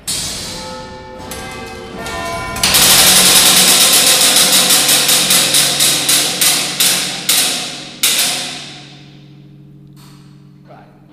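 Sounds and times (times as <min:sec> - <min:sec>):
clock chiming train mechanism whirring: 0:00.0 - 0:09.1
clock mechanism clatter: 0:00.0 - 0:10.3
clock bells ringing a quarter-hour tune: 0:00.5 - 0:05.8.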